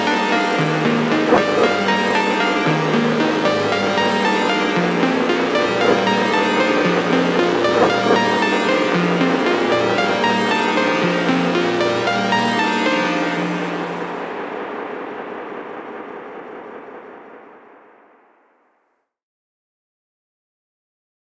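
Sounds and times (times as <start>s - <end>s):
backing track music: 0.0s - 14.8s.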